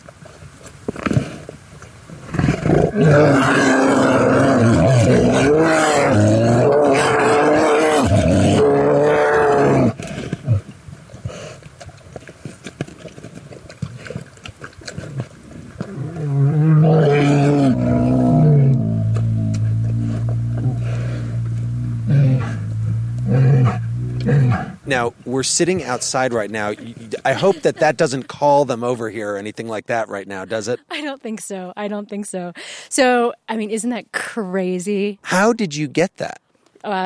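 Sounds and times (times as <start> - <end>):
grizzly bears groaning roars on a remote field recorder: 2.3 - 10.6, 15.8 - 25.0
speech: 3.0 - 3.7, 25.4 - 37.0
grizzly bear grunts: 17.2 - 24.8
laughter: 26.4 - 29.0.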